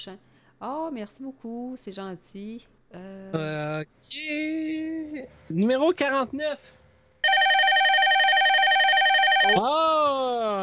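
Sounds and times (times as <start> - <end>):
speech: 0.0 - 6.8, 9.4 - 10.6
telephone ringing loudly with electronic tone: 7.2 - 9.6.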